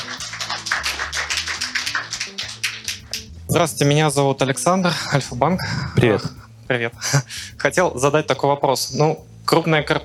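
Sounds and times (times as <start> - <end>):
audience applause: 0.0 - 3.2
speech: 3.5 - 10.0.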